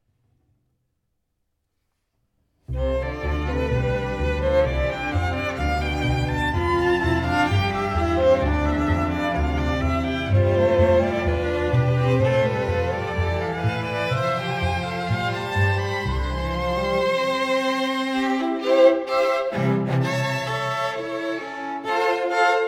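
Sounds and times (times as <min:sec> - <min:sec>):
string quintet: 0:02.7 - 0:22.6.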